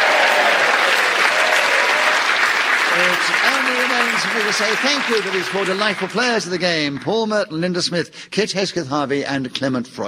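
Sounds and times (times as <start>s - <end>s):
audience applause: 0.0s - 7.2s
speech: 3.4s - 10.0s.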